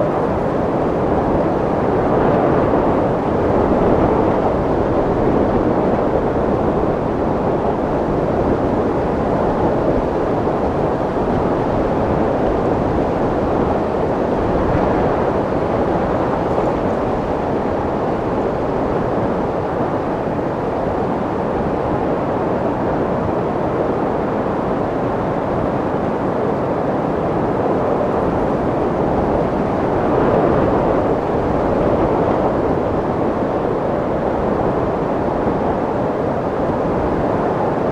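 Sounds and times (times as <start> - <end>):
storm wind: 0.0 - 37.9.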